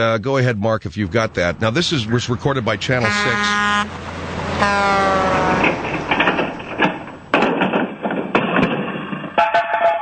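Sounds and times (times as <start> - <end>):
speech: 0.0 - 5.9
heavy truck rumbling past: 0.0 - 10.0
truck horn blaring: 2.9 - 5.8, 9.4 - 10.0.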